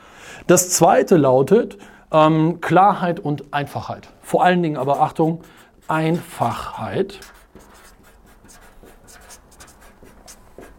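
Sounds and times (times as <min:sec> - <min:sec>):
speech: 0:00.5 - 0:07.4
pen scratching while writing a word: 0:04.8 - 0:10.7.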